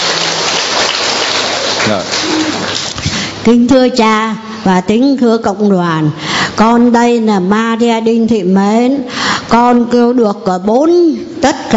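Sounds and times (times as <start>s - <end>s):
audience applause: 0.0s - 3.0s
speech: 1.9s - 2.8s, 3.4s - 11.7s.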